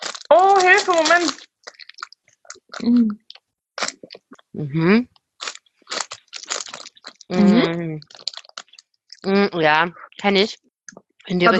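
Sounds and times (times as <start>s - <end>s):
chewing a pineapple-flavoured fruit biscuit pastry: 0.0s - 4.5s, 5.4s - 9.3s
speech: 0.8s - 1.5s, 2.8s - 3.2s, 4.0s - 5.1s, 7.3s - 8.2s, 9.2s - 11.5s.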